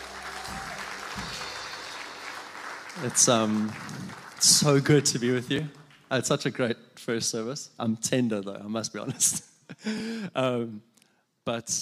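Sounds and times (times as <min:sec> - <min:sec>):
audience applause: 0:00.0 - 0:05.4
speech: 0:03.0 - 0:11.8.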